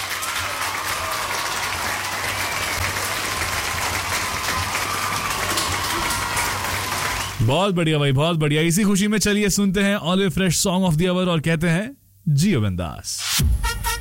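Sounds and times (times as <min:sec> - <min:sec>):
applause: 0:00.0 - 0:07.6
speech: 0:07.4 - 0:13.7.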